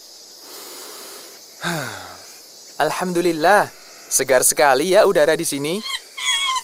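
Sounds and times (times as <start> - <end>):
steady hissing forest ambience: 0.0 - 6.6
speech: 1.6 - 2.0, 2.8 - 6.0
monkey call in a forest: 5.6 - 6.6.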